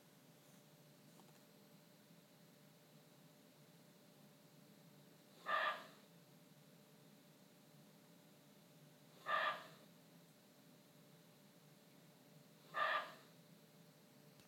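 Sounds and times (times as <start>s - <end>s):
muntjac deer calling: 5.4s - 6.0s, 9.2s - 9.8s, 12.7s - 13.3s.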